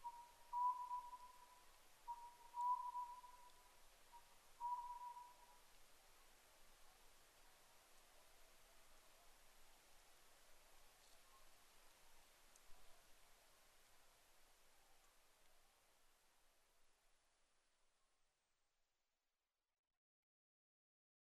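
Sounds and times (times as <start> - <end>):
Oriental scops owl whistled calls: 0.0 - 5.5.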